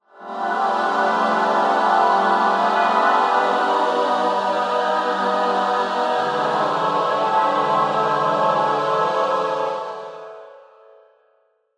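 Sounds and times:
dissonant interlude music: 0.2 - 10.4.

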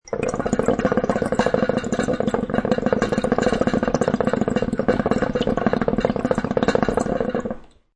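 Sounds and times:
tobacco hookah water pipe bubbling while smoked: 0.0 - 7.9.

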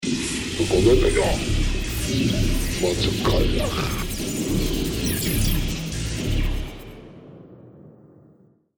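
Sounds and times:
spacecraft sound effects in a space battle: 0.4 - 7.0
alien commander speaking on a spacecraft bridge: 0.6 - 1.5, 2.7 - 4.2.

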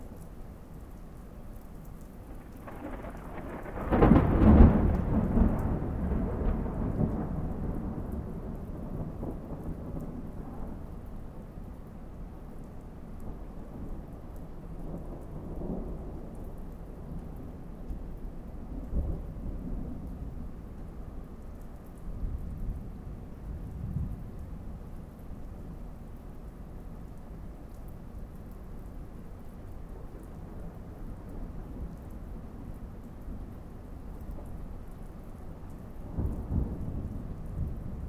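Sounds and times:
thunderstorm rain: 0.0 - 38.0
big thunder in a thunderstorm: 2.3 - 10.7, 36.1 - 38.0.

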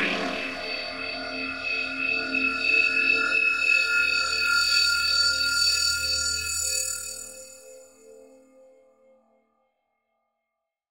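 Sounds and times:
eerie horror drone: 0.0 - 8.7.

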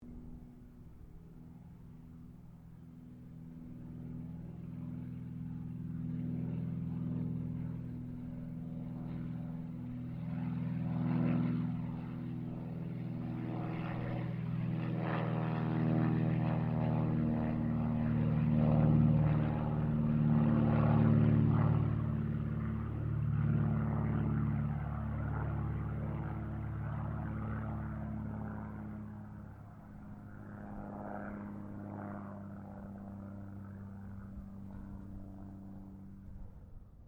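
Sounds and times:
Cessna O-1 Birddog aircraft passing: 0.0 - 37.0.

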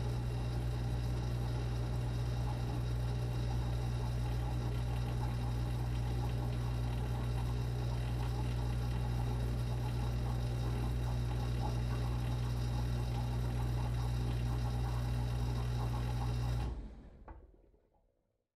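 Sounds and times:
Whirlpool household dishwasher running and switching on and off: 0.0 - 17.8.

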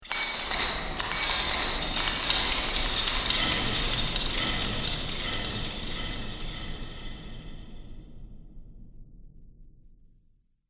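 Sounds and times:
metal chains: 0.0 - 7.6.

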